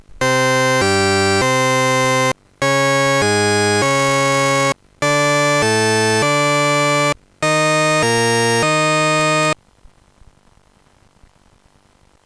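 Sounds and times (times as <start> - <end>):
tune: 0.0 - 9.6.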